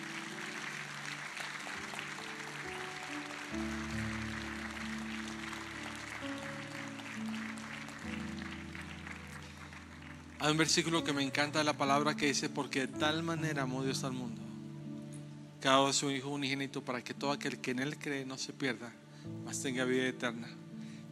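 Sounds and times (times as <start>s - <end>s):
audience applause: 0.0s - 11.4s
speech: 10.4s - 14.4s, 15.6s - 21.1s.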